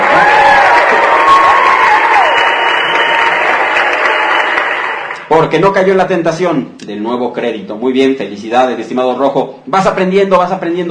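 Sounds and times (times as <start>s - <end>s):
faint cheers and whistle-like tones: 0.0s - 4.8s
crowd applause: 0.0s - 5.3s
speech: 5.4s - 10.8s.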